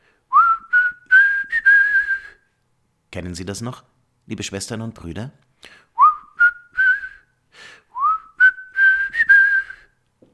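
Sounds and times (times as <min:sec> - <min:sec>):
whistled melody of a rock ballad: 0:00.3 - 0:02.4, 0:06.0 - 0:07.3, 0:07.9 - 0:09.9
speech: 0:03.1 - 0:05.9.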